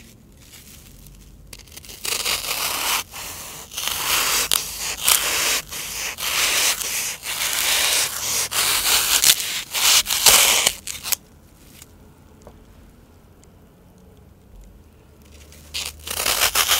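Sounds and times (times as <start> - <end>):
floral foam crunched and scraped: 0.0 - 11.2.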